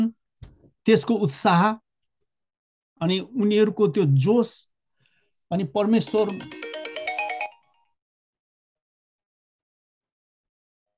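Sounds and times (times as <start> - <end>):
speech: 0.8 - 1.8, 3.0 - 4.7, 5.5 - 6.6
mobile phone ringtone: 6.0 - 8.0.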